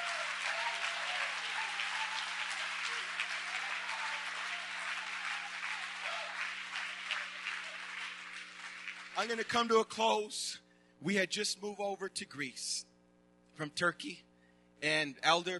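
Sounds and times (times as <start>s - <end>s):
audience clapping hands: 0.0s - 10.0s
speech: 9.2s - 12.9s, 13.6s - 15.5s.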